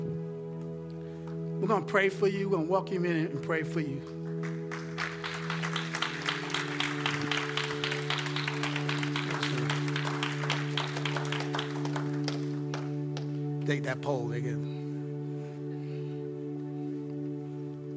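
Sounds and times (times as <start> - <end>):
sustained musical tone: 0.0 - 17.9
speech: 1.6 - 4.2, 13.7 - 14.7
church congregation clapping to welcome new members: 3.2 - 14.4.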